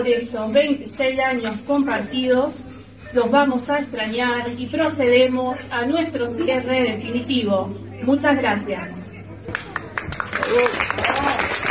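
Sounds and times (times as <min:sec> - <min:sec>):
speech: 0:00.0 - 0:09.0, 0:10.5 - 0:10.9
shoppers applauding employees as a supermarket closes: 0:09.4 - 0:11.6.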